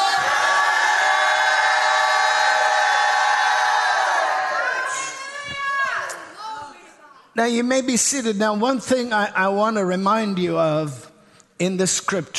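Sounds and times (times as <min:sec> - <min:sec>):
church congregation shouting: 0:00.0 - 0:06.5
speech: 0:07.4 - 0:11.0, 0:11.6 - 0:12.3.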